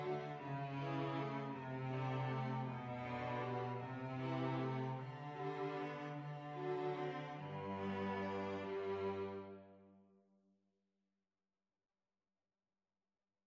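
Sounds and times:
string trio playing: 0.0s - 9.8s.

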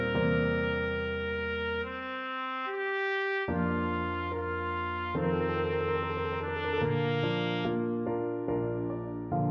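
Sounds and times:
trumpet melody: 0.0s - 9.4s.

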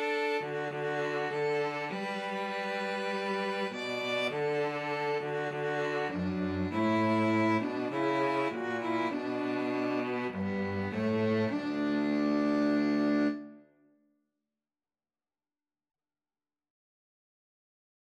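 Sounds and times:
violin and cello duet: 0.0s - 13.5s.

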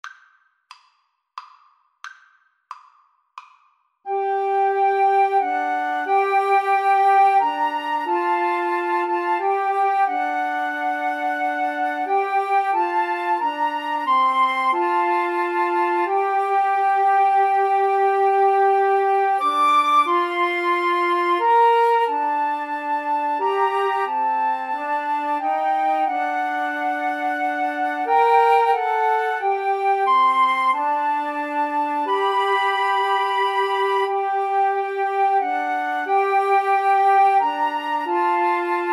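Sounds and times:
flute trio: 4.1s - 38.9s.

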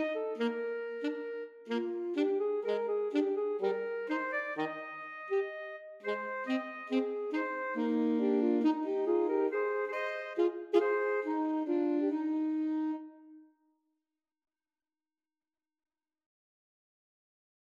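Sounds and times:
alto saxophone trio: 0.0s - 13.3s.

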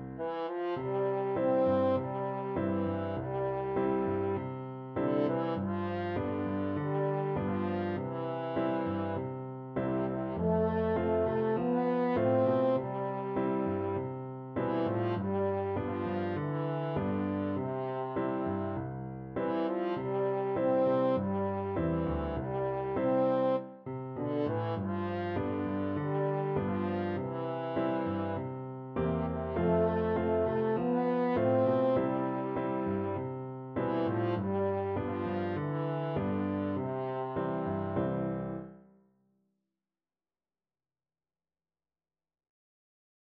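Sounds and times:
French horn: 0.2s - 38.8s.

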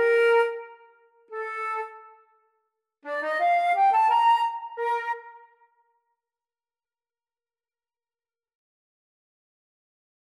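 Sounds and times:
flute duet: 0.0s - 2.3s, 3.0s - 5.7s.

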